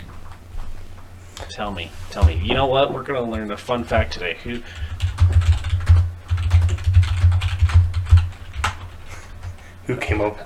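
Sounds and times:
speech: 1.5 - 5.4, 9.9 - 10.4
Google search typed on a computer keyboard: 4.7 - 9.0.

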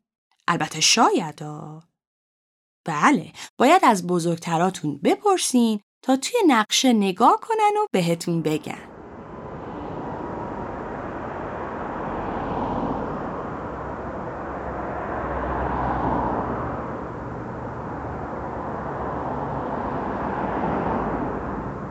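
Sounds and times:
speech: 0.5 - 1.9, 2.8 - 8.9
car driving: 8.9 - 21.9.

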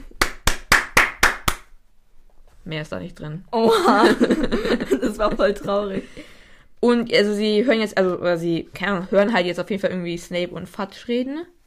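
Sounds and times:
hand clapping: 0.0 - 1.8
speech: 2.6 - 11.6
laughter: 3.6 - 6.2.

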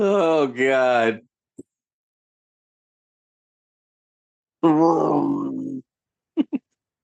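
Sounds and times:
speech: 0.0 - 1.3, 4.6 - 5.4
giant ape roar sound effect: 4.6 - 5.8.

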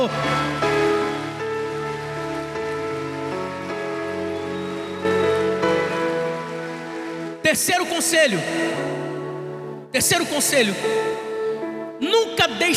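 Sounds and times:
speech: 0.0 - 0.4, 7.5 - 9.0, 10.0 - 11.3, 12.6 - 12.7
audience applauding loudly: 0.0 - 8.0
sustained keyboard chords: 0.0 - 12.7.

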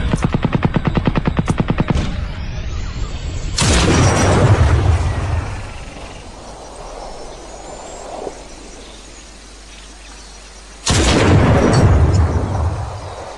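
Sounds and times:
precision rifle gunfire from the video game Crysis: 0.1 - 2.7, 3.5 - 6.3, 10.9 - 13.3.

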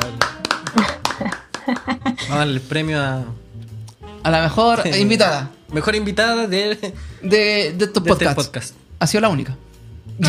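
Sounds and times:
speech: 0.0 - 1.0, 2.3 - 3.4, 4.2 - 10.2
applause: 0.0 - 2.0
laughter: 0.5 - 2.6.

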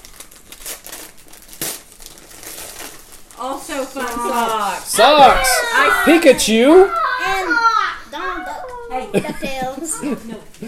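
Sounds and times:
gift wrapping paper crinkling and tearing: 0.0 - 5.3
speech: 3.4 - 7.0
laughter: 5.0 - 8.0, 8.9 - 10.6.

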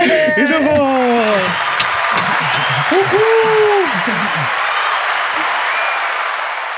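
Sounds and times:
laughter: 0.0 - 4.5
voices: 0.0 - 4.5
loud sustained audience applause: 0.0 - 6.7.

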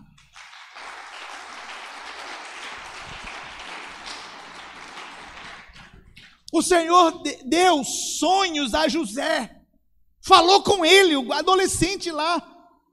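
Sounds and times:
crowd applause: 0.2 - 6.1
speech: 6.5 - 9.6, 10.3 - 12.5.

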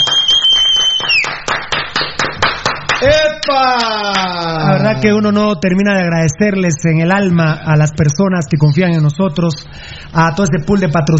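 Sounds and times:
hand clapping: 0.0 - 4.5
speech: 4.8 - 11.1.

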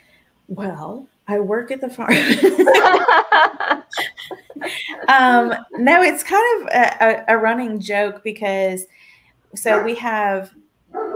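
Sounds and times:
speech: 0.5 - 10.6
laughter: 2.1 - 6.2
dogs barking: 9.7 - 10.0, 10.9 - 11.1.

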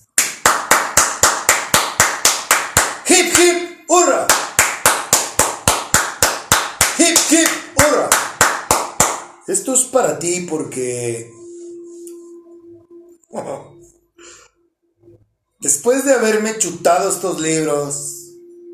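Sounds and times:
applause: 0.0 - 3.5, 4.2 - 9.3
speech: 9.5 - 11.4, 13.3 - 13.8, 15.6 - 18.2.

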